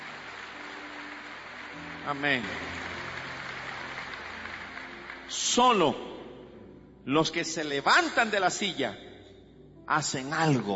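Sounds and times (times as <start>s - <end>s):
crowd applauding: 0.0s - 6.4s
speech: 2.0s - 2.8s, 5.6s - 6.2s, 7.0s - 9.1s, 9.9s - 10.7s.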